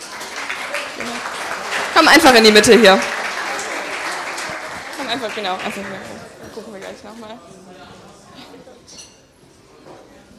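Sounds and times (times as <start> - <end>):
audience applauding: 0.0 - 7.1
faint crowd voices: 0.0 - 10.3
speech: 2.0 - 3.2, 5.1 - 8.0.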